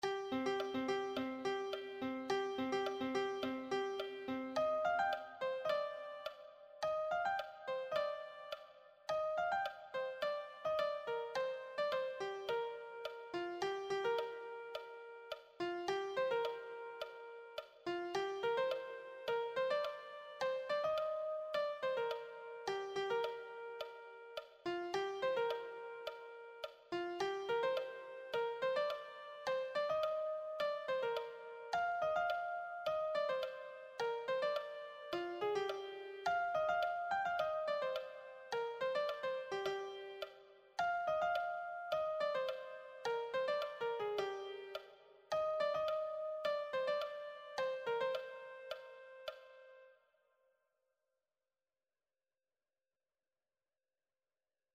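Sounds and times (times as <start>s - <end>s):
melody: 0.0s - 49.8s.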